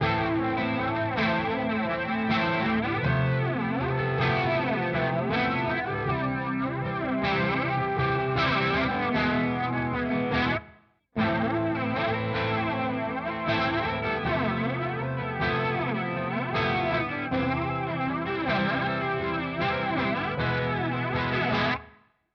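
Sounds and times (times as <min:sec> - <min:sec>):
guitar through Walrus Audio Polychrome pedal on the clean voice: 0:00.0 - 0:21.9.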